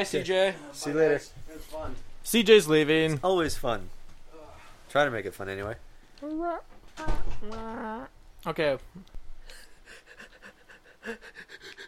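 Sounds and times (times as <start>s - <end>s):
speech: 0.0s - 4.0s, 4.9s - 9.6s, 11.0s - 11.5s
heavy rapid panting breaths: 9.4s - 11.8s.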